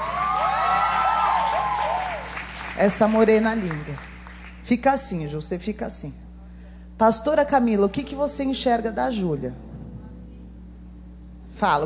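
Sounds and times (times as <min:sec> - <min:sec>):
cheers and whoops: 0:00.0 - 0:02.4
crowd clapping: 0:00.0 - 0:04.7
speech: 0:02.8 - 0:04.1, 0:04.7 - 0:06.2, 0:07.0 - 0:09.6, 0:11.6 - 0:11.8.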